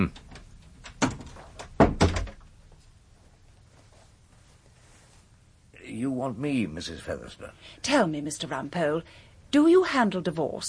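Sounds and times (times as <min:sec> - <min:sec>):
speech: 0:00.0 - 0:00.2, 0:06.2 - 0:10.6
door closing: 0:00.0 - 0:02.5.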